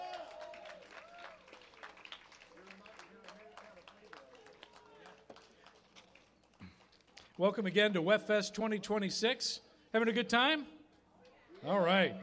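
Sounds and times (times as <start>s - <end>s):
audience applauding a band: 0.0s - 7.0s
speech: 7.4s - 10.8s, 11.6s - 12.2s.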